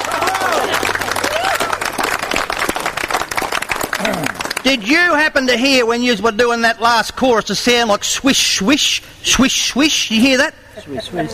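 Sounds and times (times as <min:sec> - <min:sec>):
cheering voices with a whoop: 0:00.0 - 0:02.2
crowd clapping: 0:00.0 - 0:05.2
speech: 0:04.6 - 0:11.3.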